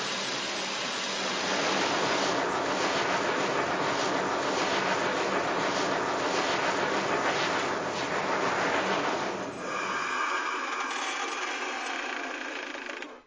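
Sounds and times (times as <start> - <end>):
Pacific locomotive: 0.0 - 13.2.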